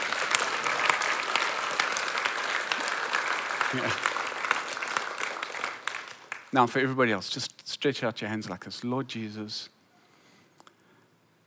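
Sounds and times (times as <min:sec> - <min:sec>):
audience clapping: 0:00.0 - 0:07.0
speech: 0:03.7 - 0:04.2, 0:06.5 - 0:09.8.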